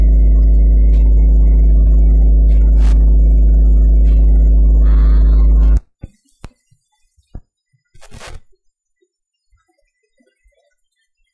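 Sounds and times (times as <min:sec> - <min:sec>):
small tape noise on right channel: 0:00.0 - 0:05.8.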